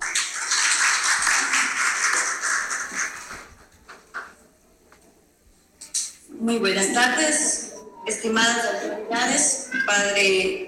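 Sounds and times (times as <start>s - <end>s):
audience applause: 0.0s - 3.5s
speech: 6.4s - 10.6s.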